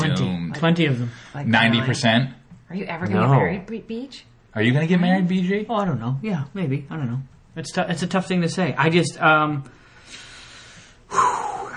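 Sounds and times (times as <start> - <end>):
speech: 0.6 - 9.8, 11.1 - 11.5
deep breath drawn in sharply: 9.7 - 11.7.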